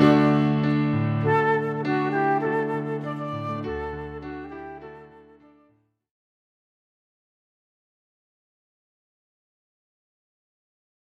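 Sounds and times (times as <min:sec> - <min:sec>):
flute and piano piece: 0:00.0 - 0:05.9.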